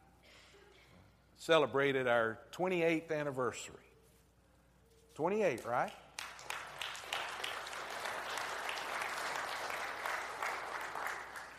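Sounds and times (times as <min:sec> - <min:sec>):
speech: 0:01.4 - 0:03.9, 0:05.2 - 0:06.0
audience applause from a large crowd: 0:06.2 - 0:11.5.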